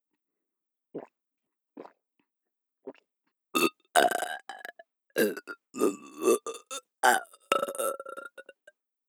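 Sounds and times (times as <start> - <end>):
person burping for ASMR: 3.6 - 8.6.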